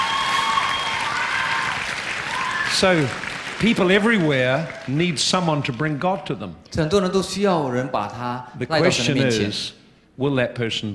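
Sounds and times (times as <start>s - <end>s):
audience applause: 0.0s - 6.3s
speech: 2.7s - 10.9s.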